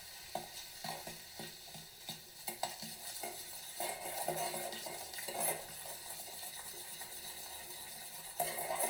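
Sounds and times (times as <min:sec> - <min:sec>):
baking soda and vinegar fizzing: 0:00.0 - 0:08.8
utensil stirring baking soda and vinegar cleaning mix: 0:02.8 - 0:08.8.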